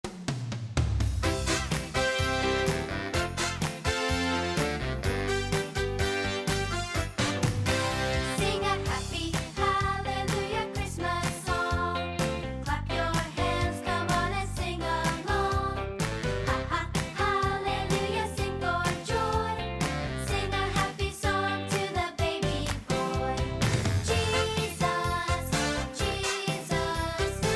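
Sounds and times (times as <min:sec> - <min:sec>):
happy Christmas song: 0:01.2 - 0:27.5.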